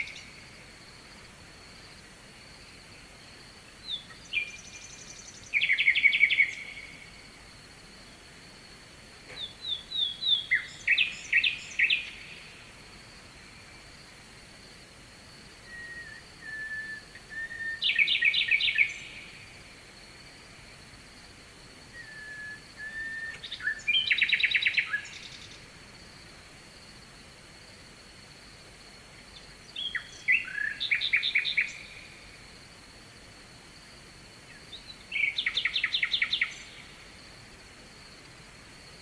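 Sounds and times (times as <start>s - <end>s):
nightingale singing: 0.0s - 0.8s, 3.0s - 7.3s, 9.3s - 12.8s, 15.6s - 19.7s, 21.9s - 25.8s, 29.3s - 32.3s, 34.4s - 37.2s.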